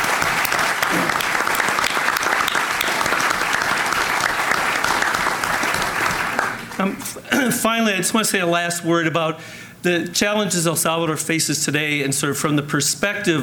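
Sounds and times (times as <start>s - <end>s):
audience applause: 0.0s - 7.0s
speech: 6.8s - 13.4s.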